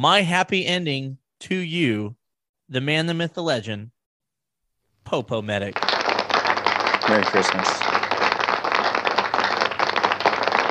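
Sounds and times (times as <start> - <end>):
speech: 0.0 - 4.0, 5.0 - 5.9, 7.1 - 7.9
edited-in canned crowd applause: 5.7 - 10.6.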